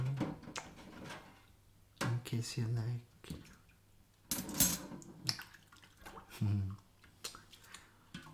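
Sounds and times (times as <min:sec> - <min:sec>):
speech: 0:02.3 - 0:03.6, 0:06.4 - 0:06.8
crockery clinking: 0:04.3 - 0:05.0
running water splashing while washing dishes: 0:05.0 - 0:08.3.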